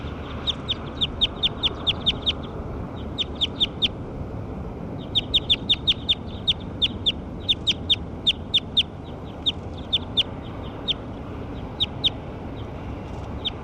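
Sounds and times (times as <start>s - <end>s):
bird calls of sharp high-pitched chirps: 0.0s - 4.0s, 5.0s - 13.6s
steady rushing noise: 0.0s - 13.6s.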